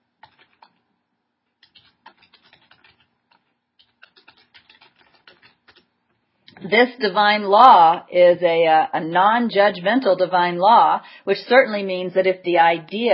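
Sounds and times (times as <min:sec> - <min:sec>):
keyboard typing: 0:00.2 - 0:00.8, 0:01.6 - 0:05.9
speech: 0:06.6 - 0:13.1.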